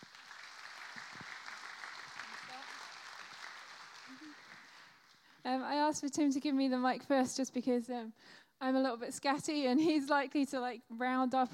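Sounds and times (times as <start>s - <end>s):
audience applause welcoming guests at a gathering: 0.0s - 5.4s
speech: 5.4s - 11.5s.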